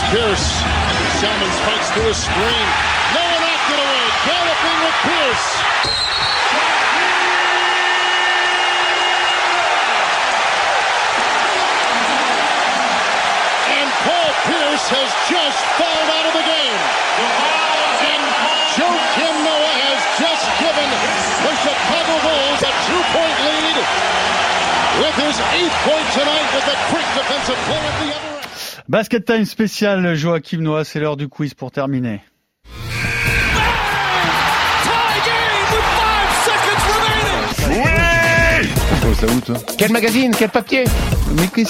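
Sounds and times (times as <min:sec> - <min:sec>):
basketball arena crowd cheering and whooping: 0:00.0 - 0:28.4, 0:32.8 - 0:40.5
speech: 0:00.1 - 0:03.3, 0:04.2 - 0:06.8, 0:14.9 - 0:19.3, 0:25.0 - 0:32.8, 0:39.2 - 0:41.6
laughter: 0:11.2 - 0:13.5
horn-like tone: 0:32.7 - 0:33.8.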